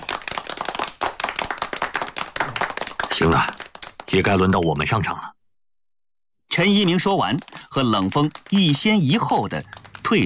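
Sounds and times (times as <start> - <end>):
warm enthusiastic applause: 0.0 - 4.5, 6.6 - 10.2
speech: 3.2 - 5.4, 6.6 - 10.2.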